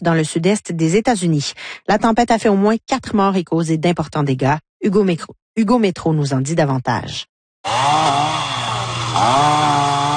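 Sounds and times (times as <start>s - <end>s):
speech: 0.0s - 8.3s
chainsaws cutting fallen trees: 7.6s - 10.1s.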